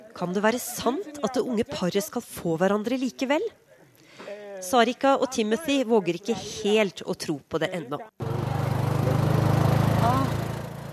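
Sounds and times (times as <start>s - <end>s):
speech: 0.2s - 3.6s, 4.6s - 8.2s
motorcycle engine driving off: 8.2s - 10.9s.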